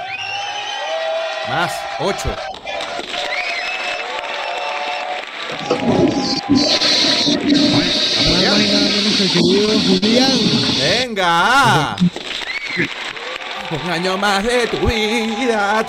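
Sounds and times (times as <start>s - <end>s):
applause: 0.0s - 7.0s, 12.2s - 15.8s
voices cheering: 0.0s - 15.8s
speech: 1.5s - 2.7s, 5.6s - 12.2s, 12.8s - 13.0s, 13.7s - 15.8s.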